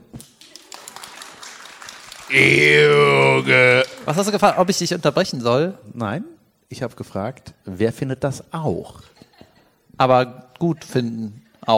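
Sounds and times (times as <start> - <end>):
applause: 0.0 - 5.0
speech: 2.3 - 9.1, 10.0 - 11.7.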